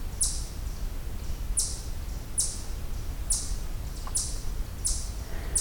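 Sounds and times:
eastern chipmunk chip calls: 0:00.1 - 0:00.6, 0:01.6 - 0:02.7, 0:03.3 - 0:05.6.

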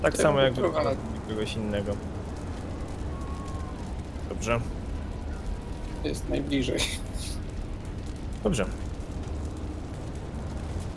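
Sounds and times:
speech: 0:00.0 - 0:02.2, 0:04.4 - 0:04.8, 0:06.0 - 0:07.4, 0:08.4 - 0:08.8
fire crackling and roaring: 0:00.0 - 0:10.9.

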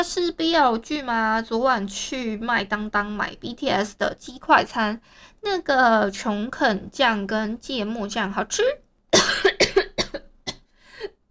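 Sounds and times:
speech: 0:00.0 - 0:08.8
cough: 0:09.1 - 0:10.7.

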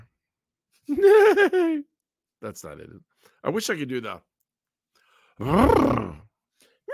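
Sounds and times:
laughter: 0:00.9 - 0:01.9
speech: 0:00.9 - 0:04.3, 0:05.4 - 0:06.3
person imitating a horse whinny: 0:05.4 - 0:06.3.

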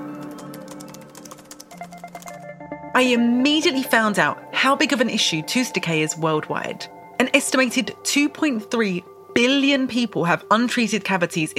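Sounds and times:
computer keyboard typing a Google search: 0:00.0 - 0:02.5
steady tonal background: 0:00.0 - 0:11.5
speech: 0:03.0 - 0:11.5.

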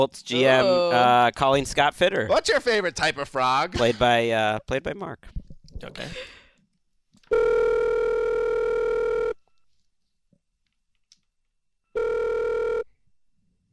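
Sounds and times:
speech: 0:00.0 - 0:06.4
telephone ringing: 0:07.3 - 0:09.4, 0:12.0 - 0:12.9.

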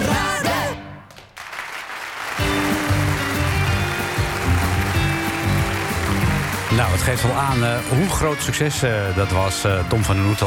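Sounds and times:
audience applause on a record: 0:00.2 - 0:08.0
speech: 0:07.1 - 0:10.4.

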